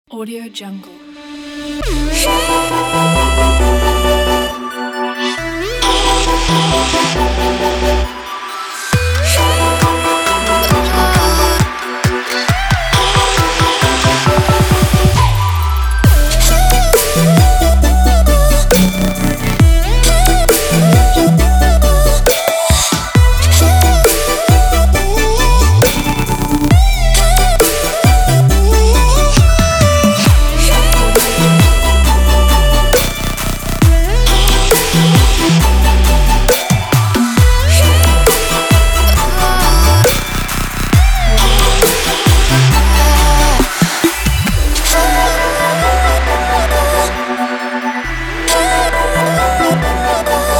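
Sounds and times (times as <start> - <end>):
future bass music: 1.0 - 50.5.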